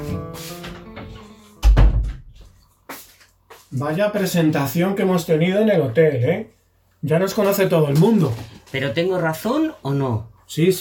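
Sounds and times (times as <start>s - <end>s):
door shutting with heavy low thump: 0.6s - 2.4s
speech: 3.7s - 10.8s.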